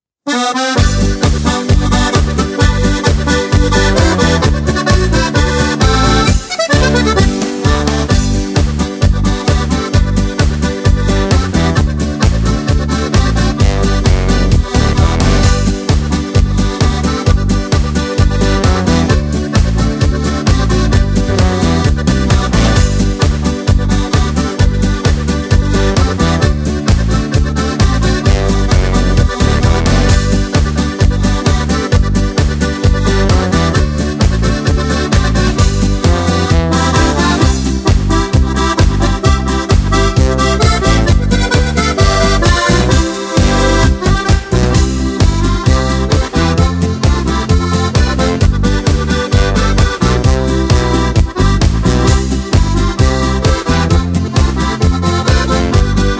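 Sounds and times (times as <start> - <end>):
karaoke backing track without choir: 0.3 - 56.1.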